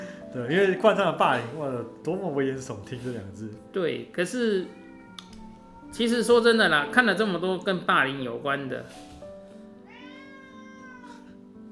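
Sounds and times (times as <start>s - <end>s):
speech: 0.4s - 4.8s, 5.9s - 9.1s
house cat meowing: 4.5s - 6.6s, 9.8s - 11.4s.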